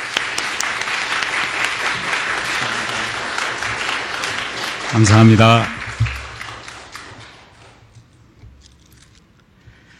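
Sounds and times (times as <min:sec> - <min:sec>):
applause welcoming a speaker: 0:00.0 - 0:08.0
speech: 0:04.9 - 0:05.8.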